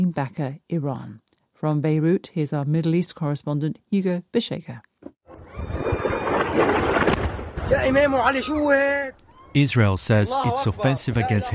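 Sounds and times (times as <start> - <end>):
speech: 0.0 - 4.9, 6.6 - 11.5
airstrike explosion in the eastern Bekaa Valley of Lebanon: 5.3 - 8.6.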